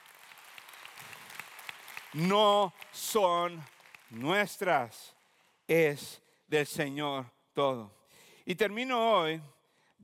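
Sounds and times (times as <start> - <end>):
audience applause: 0.0 - 4.8
speech: 2.1 - 10.0.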